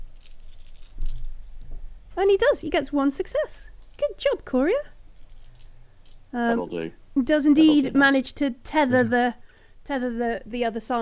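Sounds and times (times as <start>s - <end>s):
dice clattering and rattling: 0.0s - 1.4s, 5.2s - 6.3s
speech: 2.2s - 5.0s, 6.3s - 11.0s.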